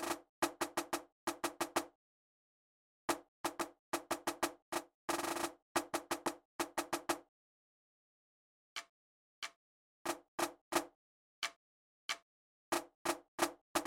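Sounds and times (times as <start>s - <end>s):
snare drum: 0.0s - 1.9s, 3.1s - 7.3s, 10.1s - 11.6s, 12.7s - 13.8s.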